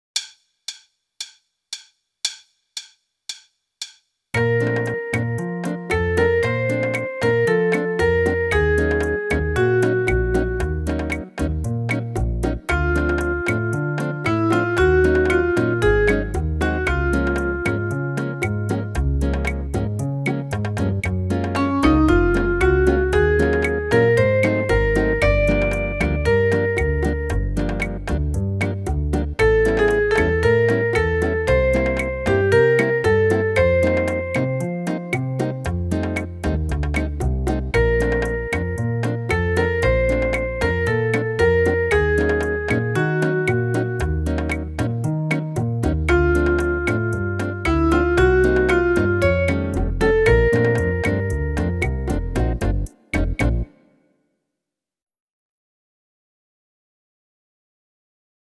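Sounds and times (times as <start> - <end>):
rumba music: 4.4 - 53.8.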